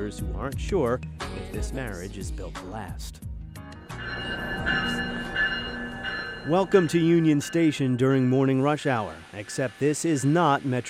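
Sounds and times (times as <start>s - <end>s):
speech: 0.1s - 3.3s, 6.4s - 10.8s
MARC commuter train slowly arriving at station: 3.8s - 10.8s.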